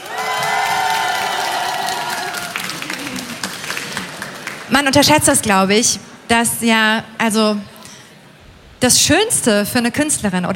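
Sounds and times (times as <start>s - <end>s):
audience applause and cheering: 0.0s - 4.7s
speech: 4.7s - 7.7s, 8.8s - 10.5s.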